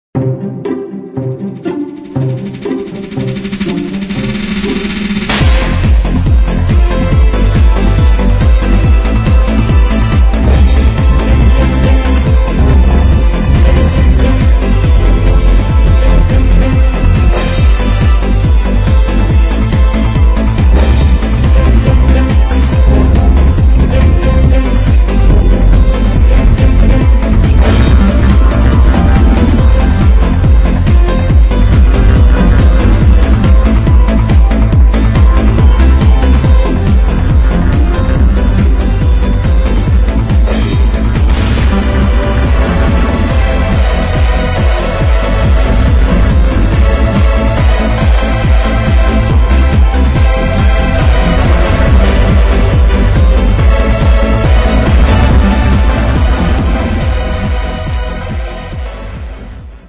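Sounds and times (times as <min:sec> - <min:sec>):
strings remix: 0:00.1 - 0:59.8.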